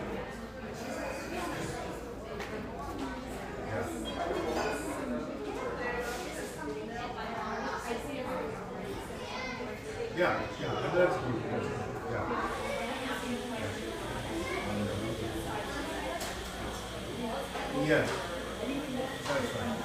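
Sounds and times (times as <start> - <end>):
voices murmuring in a neighborhood espresso shop in Portland Oregon: 0.0 - 19.8.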